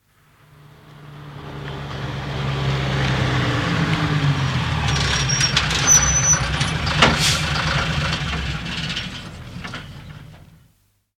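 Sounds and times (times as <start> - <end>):
2-ton diesel truck approaching and stopping outdoors: 0.4 - 10.7.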